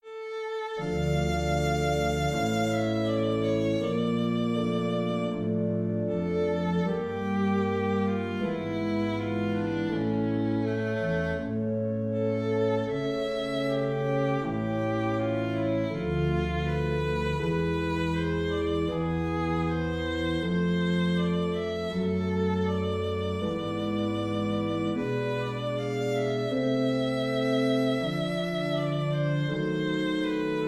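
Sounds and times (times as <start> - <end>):
largo: 0.0 - 30.6.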